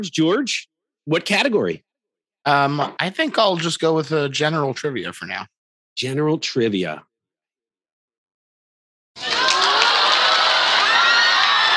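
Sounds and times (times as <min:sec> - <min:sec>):
speech: 0:00.0 - 0:07.1
crowd cheering and whooping: 0:09.2 - 0:11.7.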